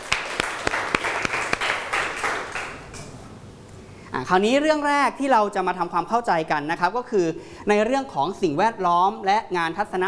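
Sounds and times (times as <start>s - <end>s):
students clapping: 0.0s - 3.1s
speech: 4.2s - 10.0s.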